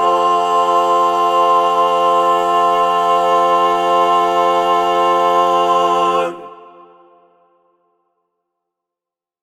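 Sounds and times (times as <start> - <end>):
men singing: 0.0 - 7.2.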